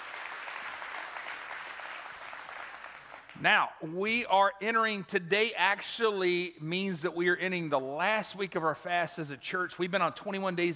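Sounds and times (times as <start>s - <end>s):
large crowd applause welcoming online viewers: 0.0s - 3.4s
speech: 3.4s - 10.7s.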